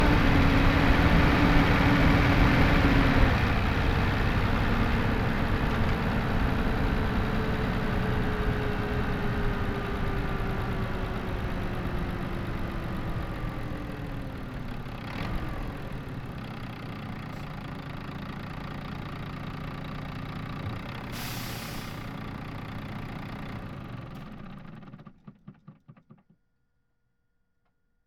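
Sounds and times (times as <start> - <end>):
Volvo FM10 truck stopping and engine switching off: 0.0 - 25.6.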